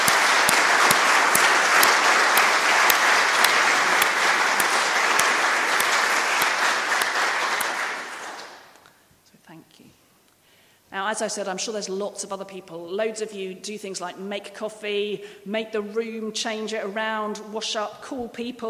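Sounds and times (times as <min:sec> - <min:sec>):
audience applause: 0:00.0 - 0:08.8
speech: 0:11.2 - 0:18.6.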